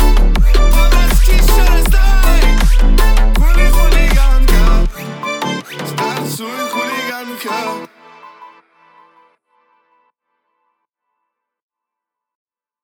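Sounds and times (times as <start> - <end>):
33-37 Hz low bass tone: 0.0 - 5.0.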